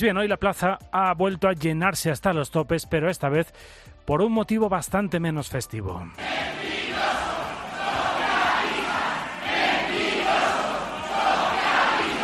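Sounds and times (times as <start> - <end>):
speech: 0.0 - 6.8
protesters shouting at a rally: 6.2 - 12.2.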